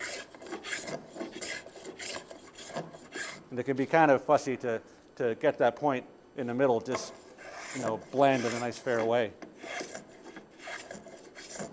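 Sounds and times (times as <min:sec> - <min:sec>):
hand plane chattering on wood: 0:00.0 - 0:03.4, 0:06.9 - 0:11.7
speech: 0:03.5 - 0:09.4.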